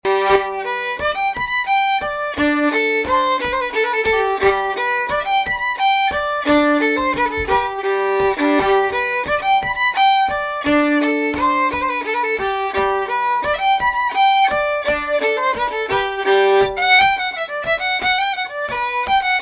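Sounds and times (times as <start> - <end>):
Swedish polska folk dance tune, fast and slow: 0.0 - 19.4.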